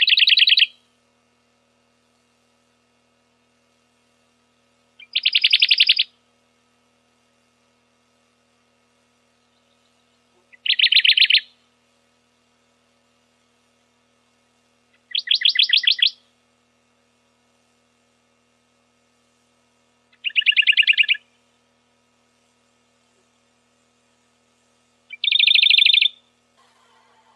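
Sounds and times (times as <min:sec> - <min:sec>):
Radde's warbler rapid trills: 0:00.0 - 0:00.8, 0:05.0 - 0:06.2, 0:09.3 - 0:11.6, 0:14.9 - 0:16.2, 0:20.1 - 0:21.4, 0:25.1 - 0:26.3.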